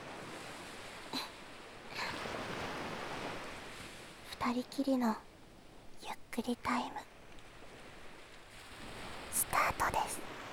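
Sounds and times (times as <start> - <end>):
ocean waves washing onto sandy beach: 0.0 - 4.4, 7.4 - 9.5
speech: 4.4 - 5.3, 6.4 - 7.1.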